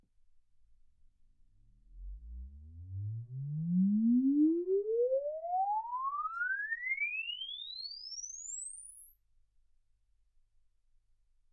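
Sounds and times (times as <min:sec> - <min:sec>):
exponential sine sweep from 10 Hz to 24 kHz: 0:01.9 - 0:09.7.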